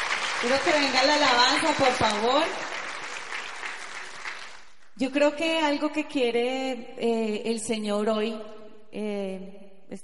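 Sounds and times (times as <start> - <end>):
crowd applauding: 0.0 - 4.9
speech: 0.4 - 2.6, 5.0 - 10.0.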